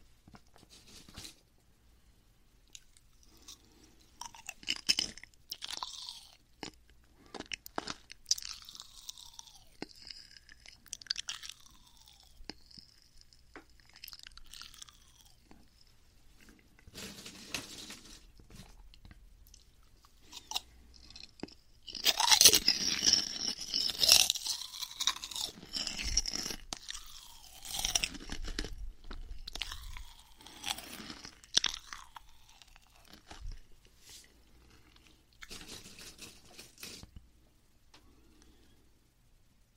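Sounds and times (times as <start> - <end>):
crunching four-layer crispy snacks: 2.7 - 15.6, 19.5 - 33.6, 34.4 - 37.2.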